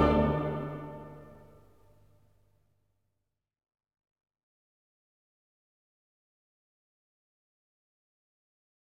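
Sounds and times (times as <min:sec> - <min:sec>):
choir and orchestra requiem: 0:00.0 - 0:01.6.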